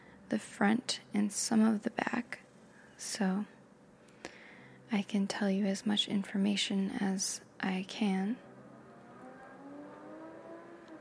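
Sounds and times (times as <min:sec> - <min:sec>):
speech: 0:00.3 - 0:02.4, 0:03.0 - 0:03.6, 0:04.9 - 0:08.5
motorcycle or car engine revving in the background: 0:08.4 - 0:10.9.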